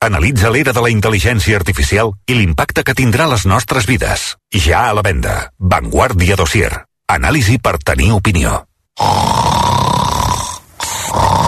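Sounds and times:
speech: 0.0 - 10.0
person snoring: 9.0 - 11.4.

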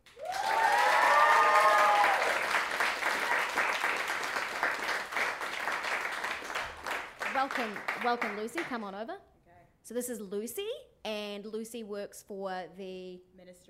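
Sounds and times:
crowd cheer: 0.0 - 7.0
audience applause welcoming a speaker on stage: 0.0 - 8.8
speech: 7.4 - 13.6.

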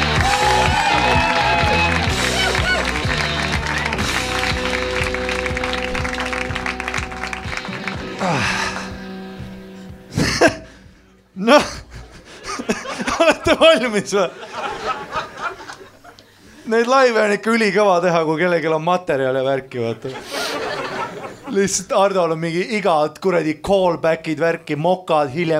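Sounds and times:
audience applause at a live stand-up comedy show: 0.0 - 9.2, 15.1 - 15.9
beat-driven music bed: 0.0 - 14.0
laughter: 0.4 - 4.0, 10.1 - 10.8, 11.5 - 16.4, 20.0 - 21.7
speech: 13.8 - 14.4, 16.7 - 20.4, 21.5 - 25.5.

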